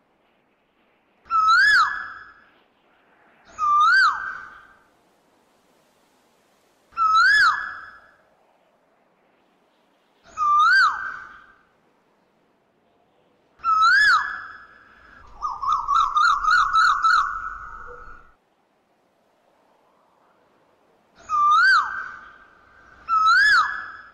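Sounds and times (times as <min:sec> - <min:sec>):
Asian koel swooping and rising-falling whistled calls: 0:01.3 - 0:02.5, 0:03.5 - 0:04.8, 0:06.9 - 0:08.2, 0:10.3 - 0:11.6, 0:13.6 - 0:18.4, 0:21.2 - 0:24.1.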